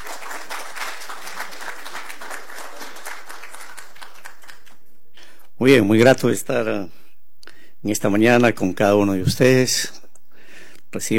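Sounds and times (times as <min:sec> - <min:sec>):
crowd applauding: 0:00.0 - 0:05.0
speech: 0:05.6 - 0:07.0, 0:07.8 - 0:10.0, 0:10.9 - 0:11.1.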